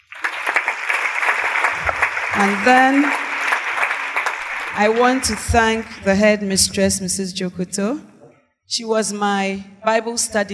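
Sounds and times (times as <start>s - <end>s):
audience hand clapping: 0.0s - 6.1s
speech: 2.4s - 3.2s, 4.7s - 8.1s, 8.7s - 10.5s.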